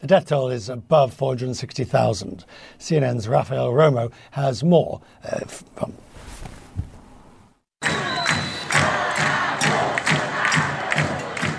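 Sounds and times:
speech: 0.1s - 6.6s
protest crowd screaming in the street: 7.8s - 11.5s.

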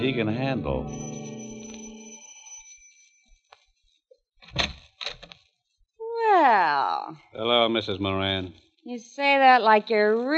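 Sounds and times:
speech: 0.0s - 1.4s, 6.7s - 10.3s
doorbell ringing at apartment door: 0.0s - 3.2s.

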